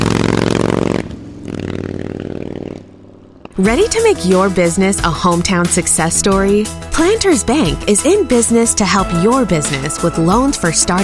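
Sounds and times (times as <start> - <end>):
Harley-Davidson motorcycle engine revving: 0.0 - 5.3
speech: 3.6 - 11.0.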